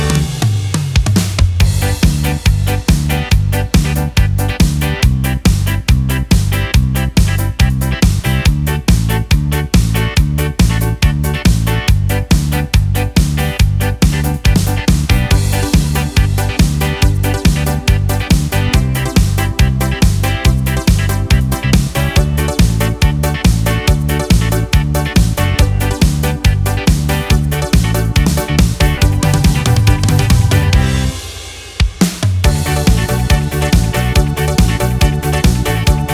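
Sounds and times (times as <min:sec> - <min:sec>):
Yamaha PSR SX600 keyboard accompaniment style: 0:00.0 - 0:00.8, 0:01.6 - 0:36.1.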